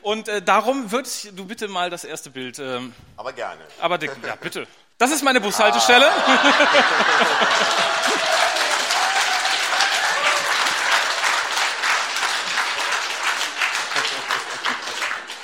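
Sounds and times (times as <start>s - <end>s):
speech: 0.0s - 8.4s
laughter: 5.4s - 9.4s, 12.2s - 15.4s
audience applause: 5.6s - 15.4s.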